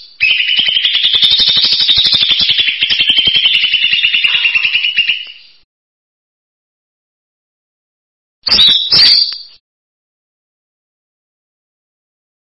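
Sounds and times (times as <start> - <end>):
bird song: 0.0 - 5.7, 8.4 - 9.6.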